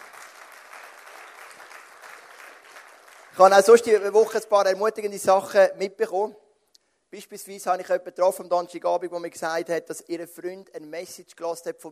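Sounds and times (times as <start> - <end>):
audience applause: 0.0 - 3.4
speech: 3.4 - 6.4, 7.1 - 11.9.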